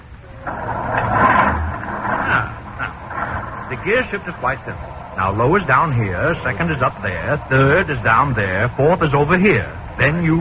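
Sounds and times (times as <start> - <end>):
vehicle engine started with a large starter button: 0.0 - 10.3
speech: 3.8 - 10.3.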